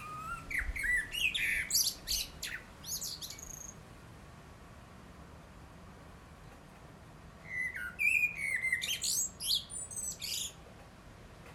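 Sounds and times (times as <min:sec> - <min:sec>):
Eurasian blackbird calls: 0:00.0 - 0:03.8, 0:07.4 - 0:10.6.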